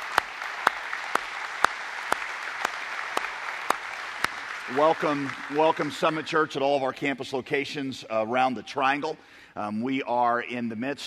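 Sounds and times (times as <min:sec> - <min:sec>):
church congregation applauding to honor mothers: 0:00.0 - 0:06.9
speech: 0:04.7 - 0:11.0.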